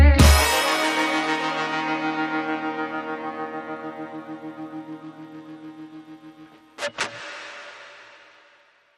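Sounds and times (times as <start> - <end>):
reggae sting: 0.2 - 6.9.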